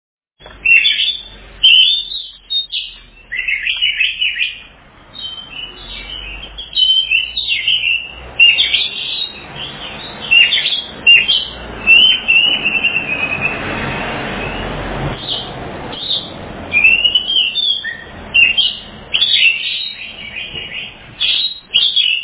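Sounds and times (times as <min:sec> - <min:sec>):
Oriental magpie-robin whistled phrases: 0:00.5 - 0:13.6, 0:14.4 - 0:22.2.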